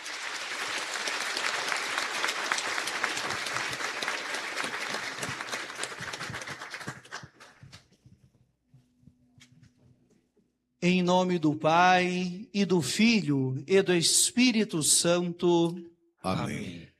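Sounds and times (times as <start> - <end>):
audience applauding: 0.0 - 7.9
speech: 10.8 - 16.9.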